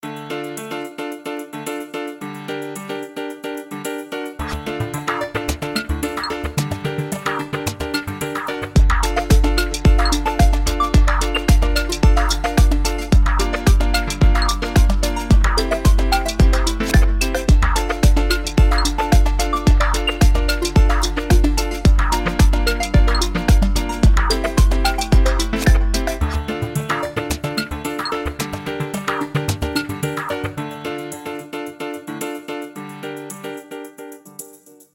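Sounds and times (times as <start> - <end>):
house music ringtone: 4.4 - 31.6.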